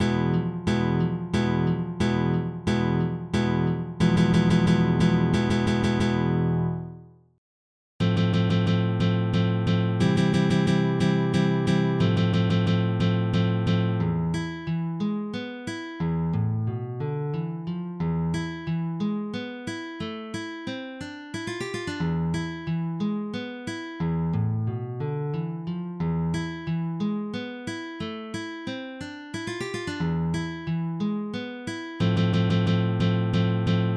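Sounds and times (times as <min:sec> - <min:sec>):
flamenco guitar playing soleares: 0:00.0 - 0:07.0, 0:08.0 - 0:33.9.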